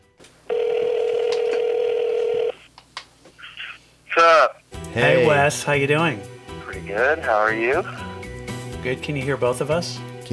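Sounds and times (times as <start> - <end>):
buzzy telephone line tone: 0.5 - 2.6
speech: 5.0 - 6.3, 6.9 - 8.0, 8.8 - 10.3.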